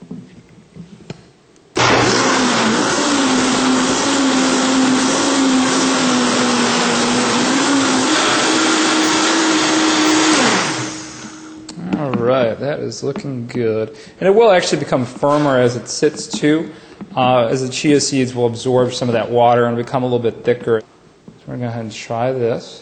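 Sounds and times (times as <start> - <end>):
blender mixing on high speed: 1.8 - 11.7
speech: 12.8 - 20.9, 21.5 - 22.8.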